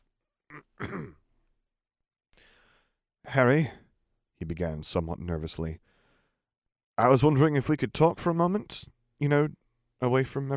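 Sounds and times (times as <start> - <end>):
throat clearing: 0.5 - 1.2
speech: 3.3 - 3.8, 4.4 - 5.9, 7.0 - 10.5.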